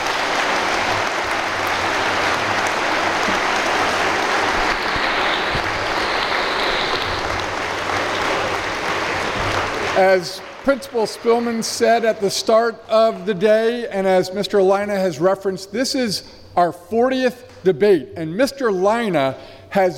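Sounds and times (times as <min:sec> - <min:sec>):
audience applause: 0:00.0 - 0:12.7
speech: 0:10.0 - 0:19.9.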